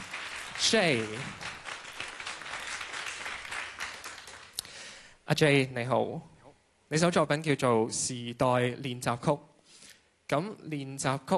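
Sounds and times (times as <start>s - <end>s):
audience applause at a stage event welcoming a musician: 0.0s - 4.6s
speech: 0.7s - 1.5s, 5.3s - 6.3s, 6.9s - 9.5s, 10.3s - 11.3s.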